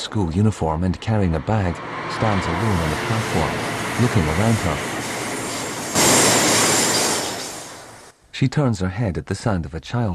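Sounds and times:
speech: 0:00.1 - 0:04.9, 0:08.4 - 0:10.1
train pulling away from the station: 0:01.4 - 0:08.1.

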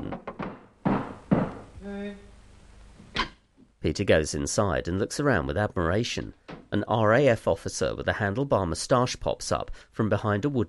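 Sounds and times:
heavy knocking on a workshop door of a construction company: 0:00.0 - 0:01.7
speech: 0:01.9 - 0:02.3, 0:03.8 - 0:10.6.

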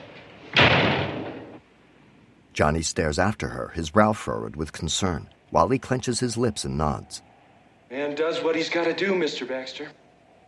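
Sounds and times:
door slammed shut: 0:00.5 - 0:01.6
speech: 0:02.6 - 0:07.3, 0:07.9 - 0:10.0.

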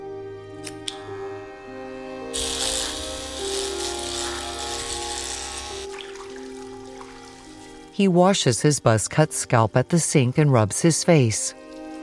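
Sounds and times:
sustained tonal music: 0:00.0 - 0:12.0
scissors snipping through hair: 0:02.4 - 0:05.9
speech: 0:08.0 - 0:11.6.

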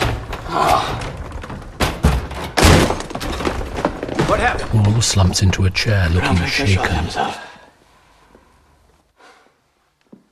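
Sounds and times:
door being broken down: 0:00.0 - 0:05.2
speech: 0:00.5 - 0:00.7, 0:04.4 - 0:07.4.

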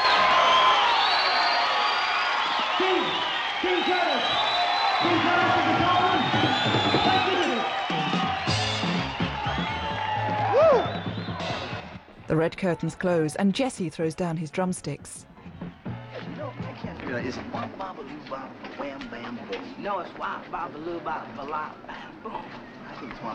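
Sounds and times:
crowd cheering and applauding: 0:00.0 - 0:12.1, 0:15.4 - 0:17.9
speech: 0:03.6 - 0:07.8, 0:12.3 - 0:15.3, 0:17.2 - 0:23.3.

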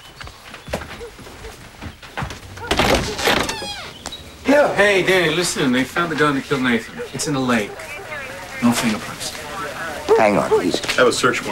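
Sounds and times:
door opening with a creak: 0:02.6 - 0:04.1
speech: 0:04.5 - 0:08.0, 0:08.6 - 0:09.4, 0:10.1 - 0:11.5
laughter: 0:04.5 - 0:11.5.

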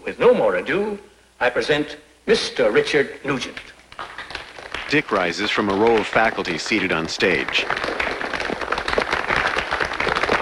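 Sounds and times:
speech: 0:00.1 - 0:03.8, 0:04.9 - 0:07.9
students applauding at a school assembly: 0:03.9 - 0:10.3.

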